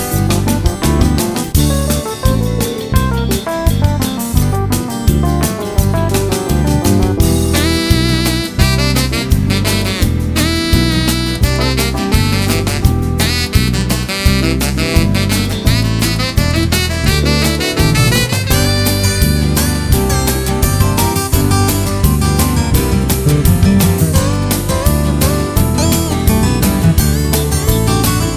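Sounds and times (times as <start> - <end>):
country rock music: 0.0 - 28.3.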